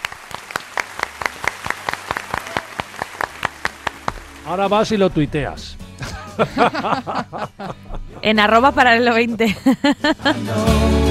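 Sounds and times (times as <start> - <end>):
small group applauding: 0.0 - 5.0
speech: 4.4 - 5.8, 6.4 - 11.0
laughter: 6.0 - 10.8.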